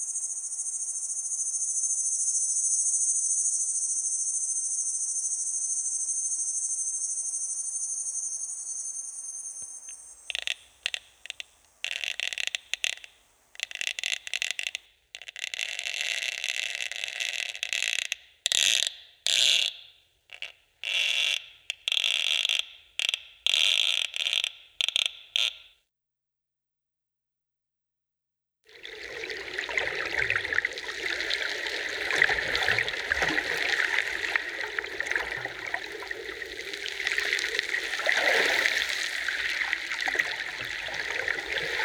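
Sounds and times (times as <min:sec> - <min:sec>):
cicadas: 0:00.0 - 0:25.7, 0:28.8 - 0:41.8
water: 0:09.6 - 0:25.6, 0:28.7 - 0:41.8.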